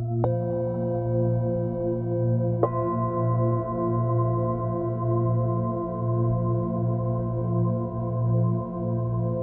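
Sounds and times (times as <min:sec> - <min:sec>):
singing bowl: 0:00.2 - 0:09.4.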